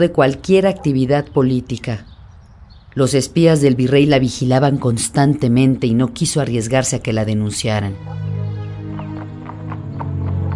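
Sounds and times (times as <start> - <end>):
speech: 0.0 - 2.1, 2.9 - 8.3
hooves of an exhausted horse clip-clopping: 8.0 - 10.5.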